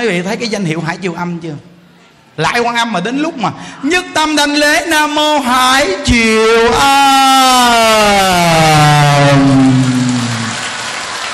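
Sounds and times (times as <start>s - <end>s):
speech: 0.0s - 1.7s, 2.4s - 9.7s
audience applauding: 8.0s - 11.3s.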